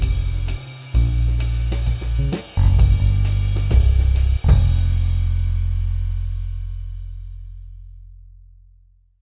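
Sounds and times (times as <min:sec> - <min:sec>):
swing accompaniment only: 0:00.0 - 0:05.7.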